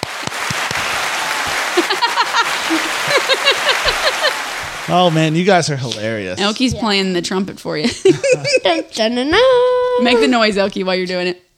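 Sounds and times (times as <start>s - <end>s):
crowd applause: 0.0s - 6.4s
laughter: 0.9s - 5.4s, 7.8s - 9.0s
speech: 4.1s - 11.4s.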